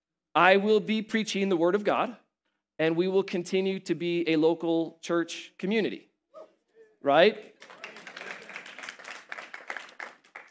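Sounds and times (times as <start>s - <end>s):
speech: 0.4s - 2.2s, 2.8s - 6.1s, 7.0s - 7.8s
audience clapping: 7.4s - 10.5s.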